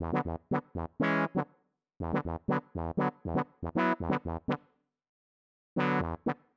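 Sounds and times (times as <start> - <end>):
keyboard riff in E minor, nu jazz house: 0.0 - 4.6, 5.8 - 6.4.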